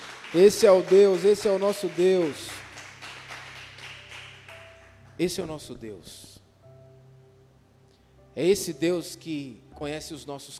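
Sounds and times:
audience applause: 0.0 - 4.8
speech: 0.3 - 2.5, 5.2 - 6.3, 8.4 - 10.5.

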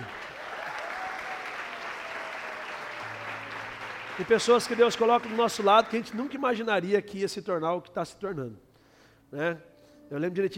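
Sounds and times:
audience applause: 0.0 - 6.4
speech: 4.2 - 8.6, 9.3 - 10.5.

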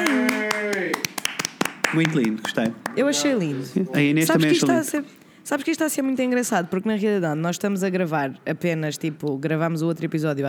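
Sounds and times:
hand clapping: 0.0 - 3.1
speech: 1.9 - 10.4.

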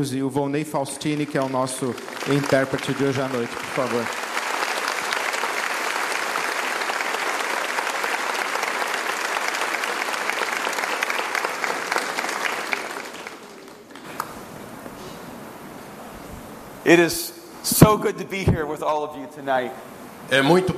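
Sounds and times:
speech: 0.0 - 4.2, 16.9 - 20.7
audience applause: 0.9 - 14.5.

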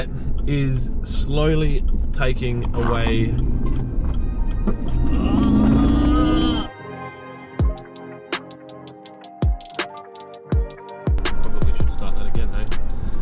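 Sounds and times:
speech: 0.0 - 3.8, 4.7 - 5.8
car engine and road noise while merging into traffic: 0.0 - 6.7, 11.2 - 13.2.

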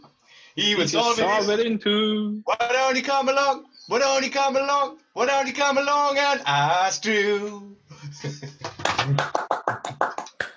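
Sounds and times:
speech: 0.6 - 8.5
person clapping hands: 8.6 - 10.5.

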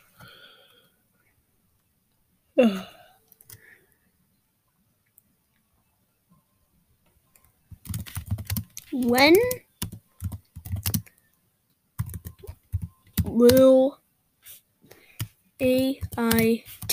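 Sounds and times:
speech: 2.6 - 2.9, 9.0 - 9.6, 13.4 - 13.8, 15.6 - 16.9
typing a question into ChatGPT on a computer keyboard: 3.3 - 3.6, 7.3 - 11.4, 12.0 - 13.7, 15.2 - 16.9.

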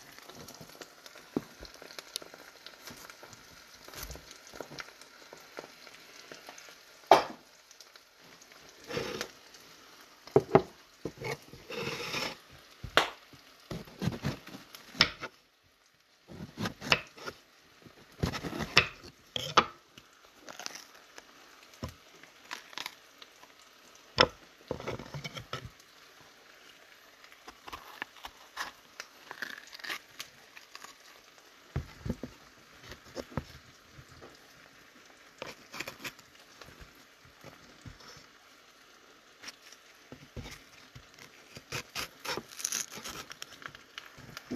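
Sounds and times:
eggs and bell peppers frying in a pan: 0.0 - 44.5.

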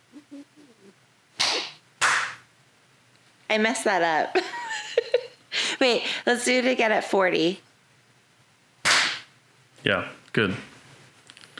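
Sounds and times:
hand clap for timing sync: 1.4 - 2.4, 8.8 - 9.3
speech: 3.5 - 4.6, 5.8 - 7.6, 9.8 - 10.7.

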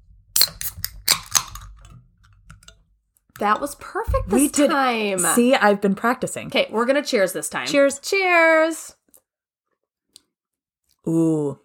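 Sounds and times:
drinks being popped open with fizz: 0.4 - 2.8
speech: 3.4 - 9.0, 11.0 - 11.6.

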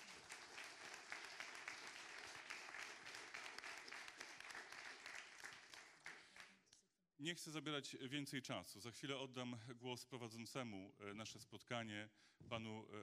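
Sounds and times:
audience applause: 0.0 - 6.6
speech: 7.2 - 13.0.

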